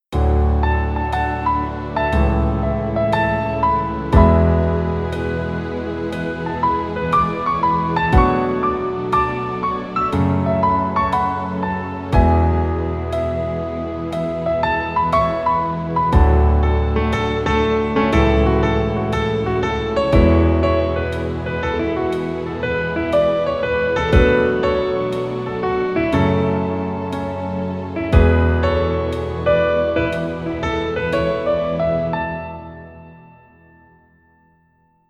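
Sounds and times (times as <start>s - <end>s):
piano: 0.0s - 35.0s.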